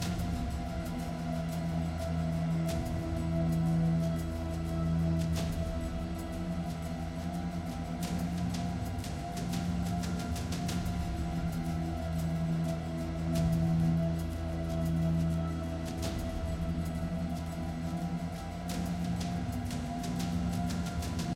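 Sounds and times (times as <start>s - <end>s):
combat evade music loop: 0.0s - 21.3s.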